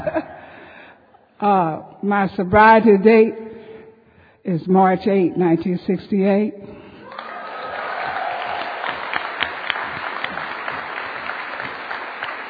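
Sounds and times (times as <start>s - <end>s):
speech: 1.4s - 3.4s, 4.4s - 6.7s
audience applause: 7.0s - 12.4s.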